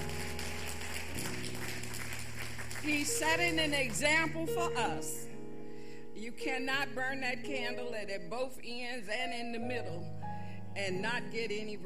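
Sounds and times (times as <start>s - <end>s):
audience hand clapping: 0.0s - 4.4s
speech: 2.8s - 5.3s, 6.2s - 10.2s, 10.8s - 11.8s.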